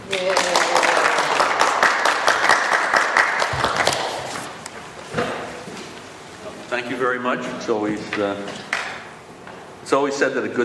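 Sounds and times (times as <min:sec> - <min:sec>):
audience applause welcoming a lecture speaker: 0:00.0 - 0:04.5
speech: 0:06.8 - 0:08.7, 0:09.9 - 0:10.6.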